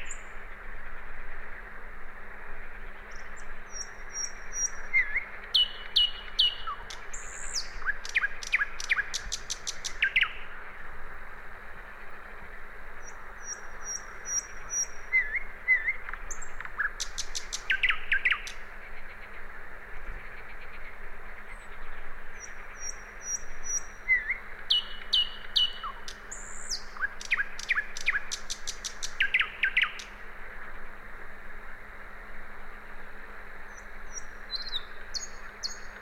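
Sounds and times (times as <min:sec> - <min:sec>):
common nightingale singing: 0:00.0 - 0:00.4, 0:03.1 - 0:10.6, 0:13.0 - 0:18.7, 0:21.5 - 0:30.2, 0:33.7 - 0:35.9.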